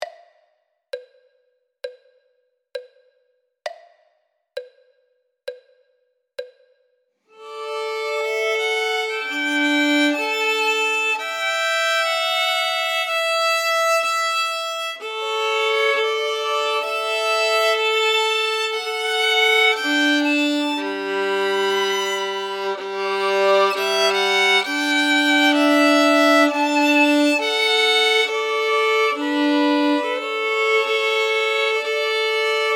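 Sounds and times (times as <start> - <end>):
first and second violins: 7.3 - 32.7.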